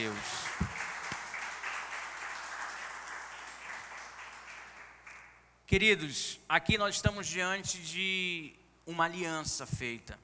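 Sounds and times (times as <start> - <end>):
audience applause: 0.0 - 5.4
speech: 5.7 - 10.2.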